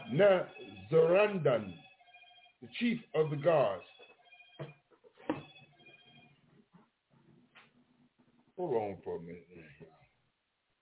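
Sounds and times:
mobile phone ringing with a steady electronic tone: 0:00.0 - 0:06.4
speech: 0:00.1 - 0:01.8, 0:02.6 - 0:03.9, 0:08.6 - 0:10.0.

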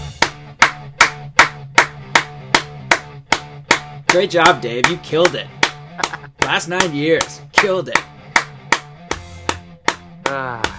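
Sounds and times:
people clapping: 0:00.2 - 0:02.7, 0:06.0 - 0:08.8
speech: 0:04.1 - 0:05.6, 0:06.5 - 0:08.1, 0:10.3 - 0:10.7.

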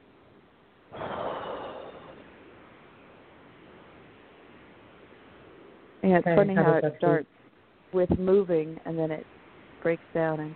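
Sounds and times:
deep breath during a guided letting-go exercise: 0:00.9 - 0:02.3
speech: 0:06.0 - 0:10.5.

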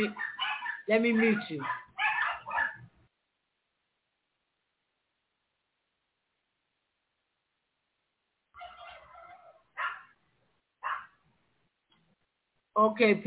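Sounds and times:
speech: 0:00.0 - 0:00.2, 0:00.9 - 0:01.8, 0:12.8 - 0:13.2
dog barking: 0:00.0 - 0:02.9, 0:08.6 - 0:10.2, 0:10.8 - 0:11.2.

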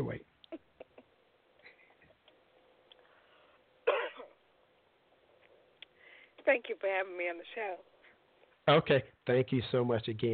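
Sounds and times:
person coughing after choking: 0:03.8 - 0:04.4
speech: 0:06.5 - 0:07.9, 0:08.7 - 0:10.3.

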